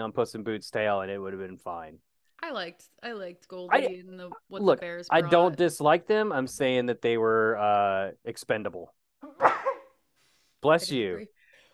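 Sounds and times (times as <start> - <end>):
speech: 0.0 - 9.6, 10.6 - 11.4
sneezing: 9.4 - 10.0.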